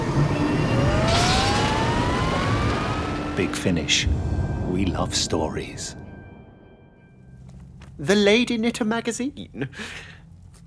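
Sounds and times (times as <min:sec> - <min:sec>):
engines firing up and revving: 0:00.0 - 0:05.3
speech: 0:03.4 - 0:06.0, 0:08.0 - 0:10.1.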